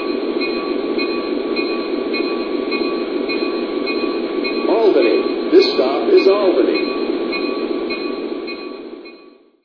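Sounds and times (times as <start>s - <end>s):
F59PHI locomotive trains: 0.0s - 9.6s.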